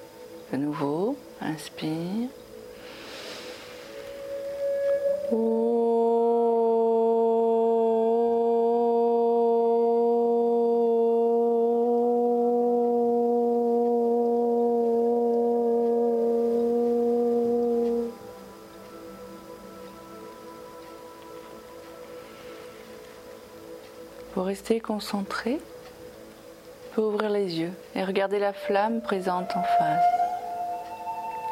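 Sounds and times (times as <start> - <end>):
person chanting the syllable OM: 0.0 - 25.8, 26.9 - 31.5
speech: 0.5 - 2.4, 5.3 - 5.6, 24.5 - 25.7, 27.0 - 30.2.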